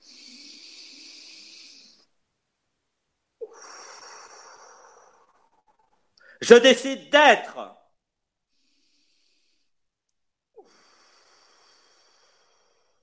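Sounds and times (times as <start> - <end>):
deep breathing: 0.0 - 2.2, 3.4 - 6.4, 8.4 - 9.9, 10.6 - 13.0
speech: 6.4 - 7.8.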